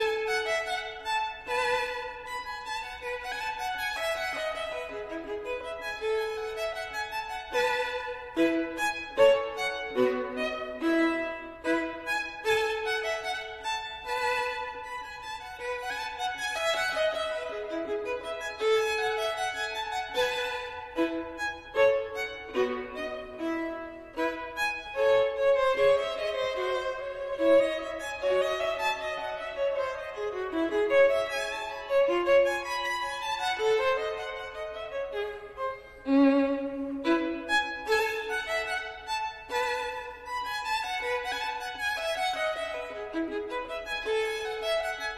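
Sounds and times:
violin: 0:00.0 - 0:45.1.

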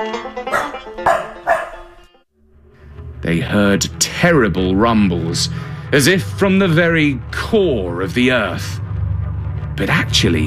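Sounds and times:
speech: 0:00.0 - 0:01.5, 0:03.2 - 0:08.8, 0:09.8 - 0:10.4
steady humming musical background: 0:00.0 - 0:10.4
dogs barking: 0:00.4 - 0:02.0.

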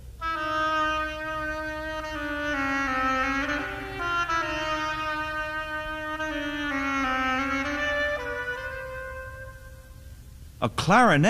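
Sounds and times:
oboe playing a melody: 0:00.0 - 0:10.3
speech: 0:10.6 - 0:11.2.

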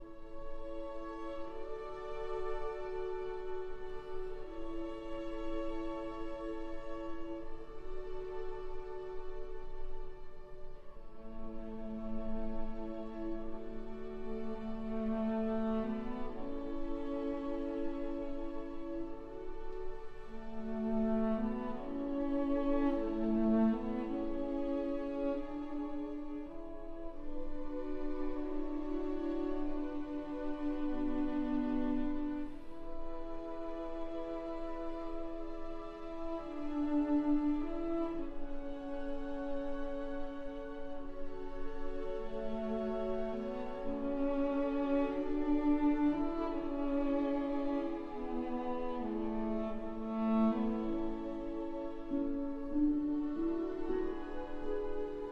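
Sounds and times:
cello and strings: 0:00.0 - 0:55.3.

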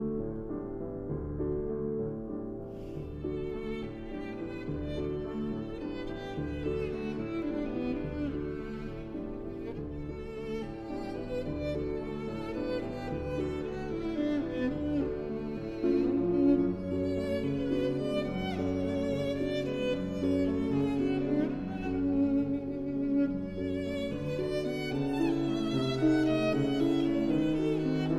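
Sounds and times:
piano: 0:00.0 - 0:28.1
violin: 0:00.0 - 0:28.1.

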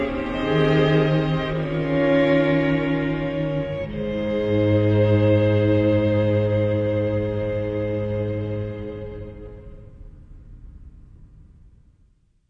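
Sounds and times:
string quartet playing a carol: 0:00.0 - 0:09.8.

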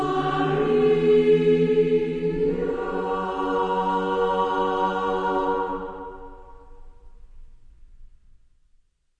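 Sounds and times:
women's choir: 0:00.0 - 0:06.8.

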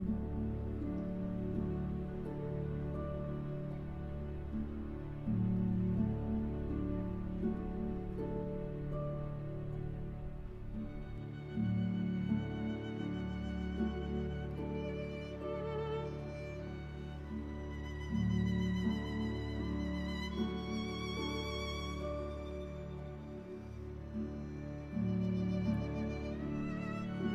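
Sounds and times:
orchestra playing: 0:00.0 - 0:27.3
solo violin: 0:00.0 - 0:27.3.

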